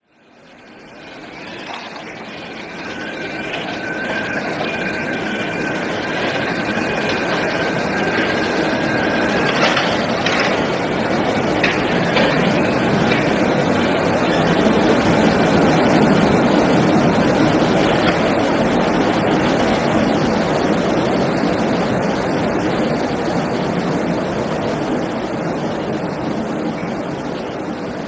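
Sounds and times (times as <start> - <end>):
stereo street ambience: 0.0 - 28.0.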